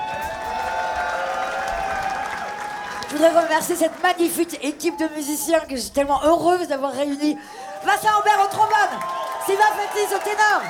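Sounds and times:
concert audience applause honouring a record label's team: 0.0s - 5.5s, 7.7s - 10.6s
speech: 3.1s - 10.6s.

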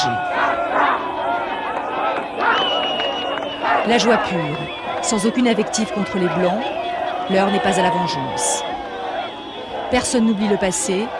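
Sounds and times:
speech: 0.0s - 0.2s, 3.8s - 8.7s, 9.9s - 11.1s
enthusiastic street crowd cheering and shouting: 0.0s - 11.1s.

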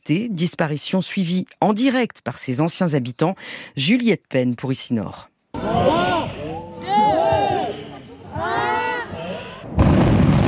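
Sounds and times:
speech: 0.0s - 6.1s
crowd shouting and cheering at a tower demolition: 5.6s - 9.8s
rumble of the 28-storey Kennedy tower collapsing after dynamite demolition: 9.6s - 10.4s.

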